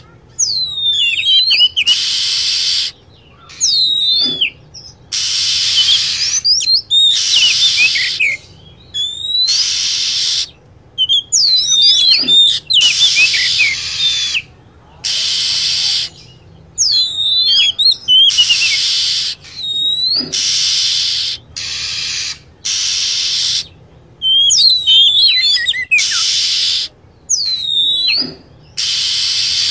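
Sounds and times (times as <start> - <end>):
lovebird chirping: 0.0 - 29.7.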